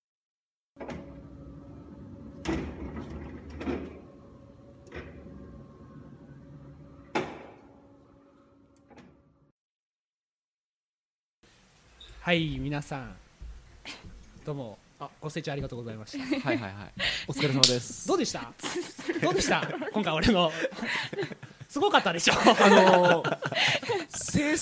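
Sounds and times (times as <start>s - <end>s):
parking lot gate bar motor hum: 0.8s - 8.8s
parking lot gate bar clunks and rattles: 2.4s - 4.1s, 7.0s - 7.8s
speech: 12.2s - 13.2s, 14.4s - 24.6s
laughter: 16.1s - 24.6s.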